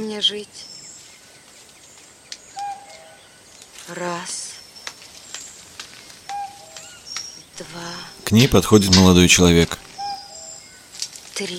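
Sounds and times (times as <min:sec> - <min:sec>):
speech: 0:00.0 - 0:00.8, 0:03.9 - 0:04.5, 0:07.6 - 0:09.8, 0:11.4 - 0:11.5
hiss: 0:00.0 - 0:11.5
cuckoo calling: 0:02.4 - 0:03.5, 0:04.2 - 0:10.9.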